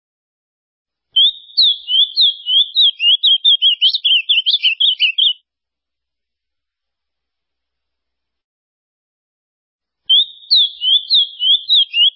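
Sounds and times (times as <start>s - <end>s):
ultramarine grosbeak song: 1.2s - 5.4s, 10.1s - 12.1s.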